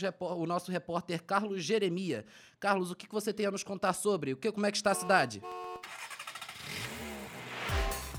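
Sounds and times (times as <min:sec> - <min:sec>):
speech: 0:00.0 - 0:06.0
city street noise in Rio de Janeiro: 0:05.0 - 0:08.1
motor engine droning and revving in Rio de Janeiro traffic: 0:06.0 - 0:08.1.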